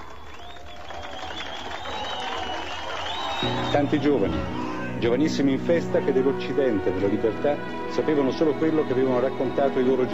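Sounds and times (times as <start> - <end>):
shouts and whistles: 0.0 - 4.5
large crowd applauding: 0.0 - 4.8
speech: 3.4 - 10.1.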